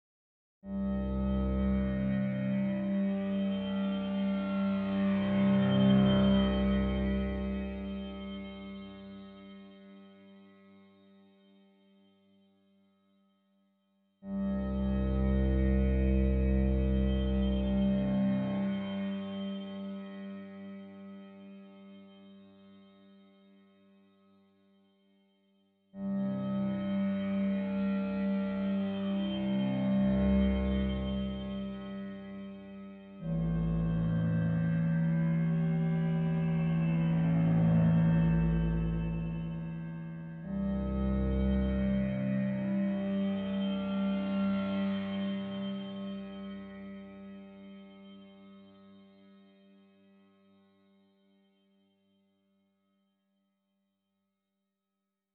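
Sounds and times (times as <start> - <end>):
ambient music: 0.7 - 10.4, 14.3 - 22.4, 26.1 - 49.2.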